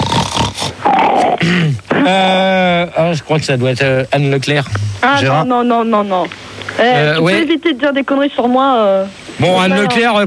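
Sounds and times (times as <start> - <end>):
loud rough snorting and sniffing: 0.0 - 1.9
grunting whining vocal sounds: 0.0 - 2.4, 4.5 - 5.4
speech: 1.4 - 2.3, 3.0 - 10.2.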